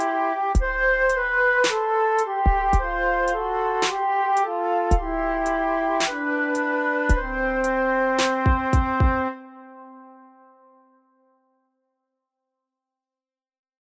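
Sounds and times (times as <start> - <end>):
three-part playalong music with beat: 0.0 - 4.0, 4.9 - 9.3.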